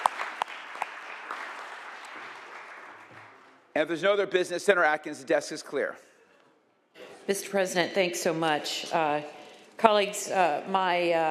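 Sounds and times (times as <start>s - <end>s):
group clapping: 0.0s - 3.7s
speech: 3.8s - 6.1s, 7.3s - 11.3s.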